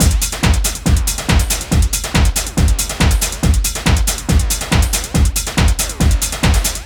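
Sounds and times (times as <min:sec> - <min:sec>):
140 BPM house drum loop: 0:00.0 - 0:06.8.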